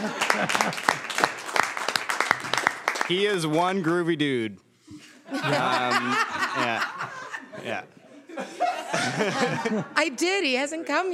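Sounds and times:
laughter: 0:00.0 - 0:01.1, 0:05.2 - 0:10.4
small group clapping: 0:00.0 - 0:04.0
speech: 0:00.4 - 0:01.2, 0:03.1 - 0:11.1.

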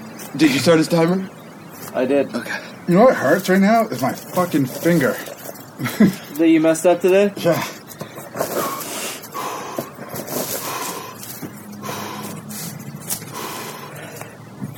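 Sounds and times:
speech: 0:00.3 - 0:01.4, 0:02.0 - 0:07.8
rapid Wim Hof breathing: 0:07.6 - 0:14.7.

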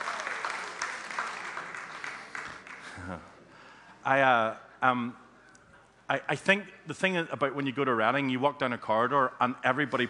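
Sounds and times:
round of applause: 0:00.0 - 0:03.3
speech: 0:03.0 - 0:03.3, 0:04.0 - 0:05.2, 0:06.1 - 0:10.0.

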